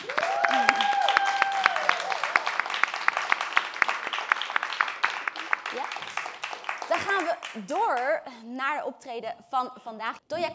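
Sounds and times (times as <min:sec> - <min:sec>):
audience applause: 0:00.0 - 0:07.7
speech: 0:07.6 - 0:10.5.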